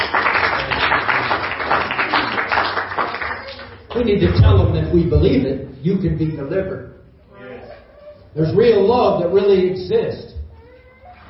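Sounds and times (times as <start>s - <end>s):
crowd applauding: 0.0s - 4.1s
speech: 4.0s - 7.0s, 8.4s - 10.3s.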